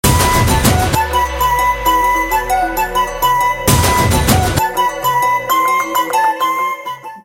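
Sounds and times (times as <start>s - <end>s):
instrumental ringtone: 1.0s - 7.2s.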